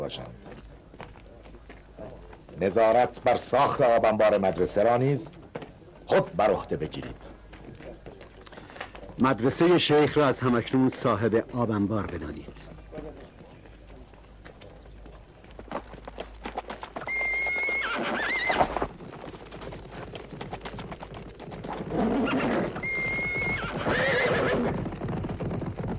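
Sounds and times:
several horses' hooves clip-clopping: 0:00.0 - 0:25.9
speech: 0:00.1 - 0:00.5, 0:02.0 - 0:05.4, 0:06.1 - 0:07.3, 0:09.2 - 0:13.2
horses whinnying: 0:16.8 - 0:25.9.

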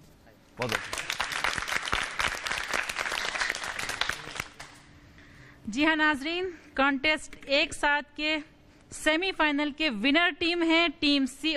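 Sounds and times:
speech: 0:00.6 - 0:01.0, 0:05.7 - 0:11.5
audience applauding prize winners at a contest: 0:00.6 - 0:04.8.

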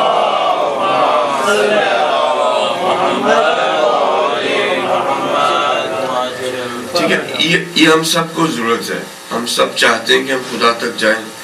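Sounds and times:
crowd chanting salawat at a religious lecture: 0:00.0 - 0:07.3
speech: 0:01.5 - 0:01.8, 0:07.1 - 0:11.3.

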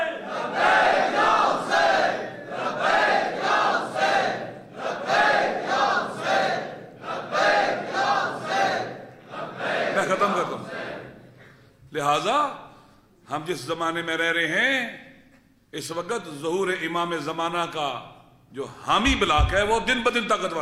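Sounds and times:
crowd chanting slogans at a religious gathering: 0:00.1 - 0:11.3
speech: 0:13.3 - 0:15.0, 0:15.7 - 0:20.5.

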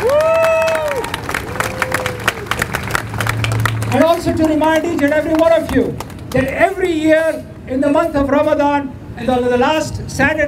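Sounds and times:
audience cheering: 0:00.0 - 0:05.1
audience applause: 0:00.0 - 0:06.6
speech: 0:03.9 - 0:10.4.

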